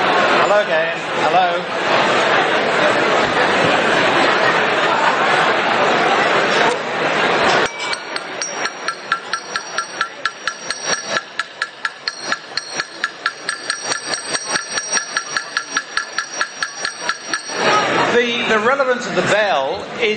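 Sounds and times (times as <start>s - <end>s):
people talking: 0.0s - 20.1s
laughter: 1.7s - 7.7s
bell clanging: 7.6s - 18.0s.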